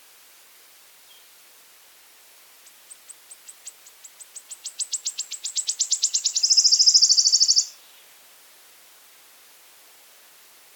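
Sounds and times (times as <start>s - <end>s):
wood warbler song with ticks ending in a sizzling trill: 2.6s - 8.1s.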